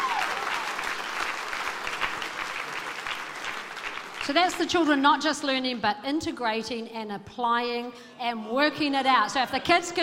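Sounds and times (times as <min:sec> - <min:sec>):
audience applause: 0:00.0 - 0:04.6
speech: 0:04.3 - 0:10.0.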